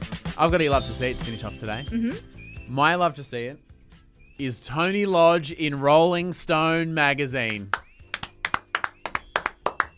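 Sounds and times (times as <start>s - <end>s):
speech: 0.4s - 3.6s, 4.4s - 7.8s
hand clapping: 7.4s - 9.9s.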